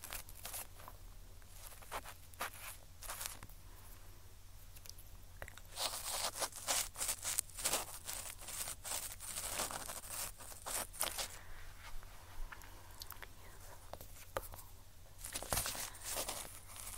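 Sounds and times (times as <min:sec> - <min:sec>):
ear cleaning with picking, brushing, Q-tip and tweezers: 0:00.0 - 0:03.5, 0:05.6 - 0:11.4, 0:15.2 - 0:16.9
crinkly rustling: 0:00.0 - 0:03.9, 0:04.6 - 0:16.9.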